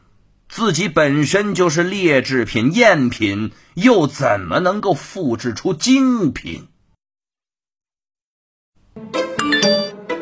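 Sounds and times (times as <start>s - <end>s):
speech: 0.6s - 6.7s
text message notification tone: 9.4s - 10.0s.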